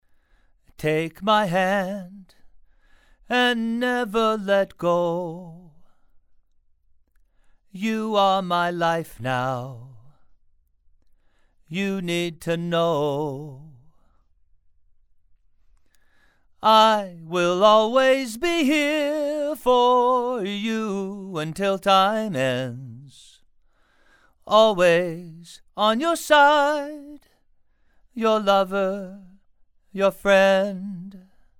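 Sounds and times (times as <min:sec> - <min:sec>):
male vocals: 0:00.7 - 0:02.5, 0:03.2 - 0:06.0, 0:07.7 - 0:10.3, 0:11.6 - 0:14.2, 0:16.6 - 0:23.4, 0:24.4 - 0:27.4, 0:28.1 - 0:31.5.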